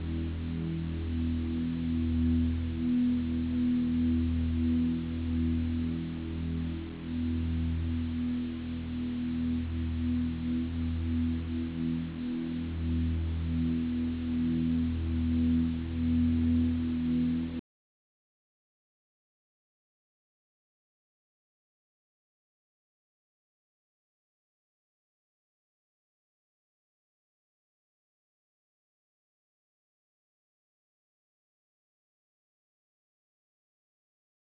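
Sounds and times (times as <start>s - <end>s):
music: 0.0s - 17.6s.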